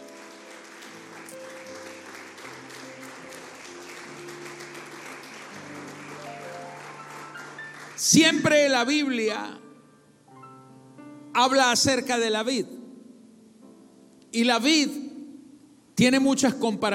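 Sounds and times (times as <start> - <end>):
audience applause: 0.0 - 8.3
speech: 8.0 - 9.6, 11.4 - 12.8, 14.3 - 15.0, 16.0 - 16.9.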